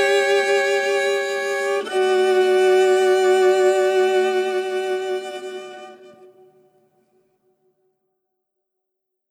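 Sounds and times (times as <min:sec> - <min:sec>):
meditation music: 0:00.0 - 0:07.4.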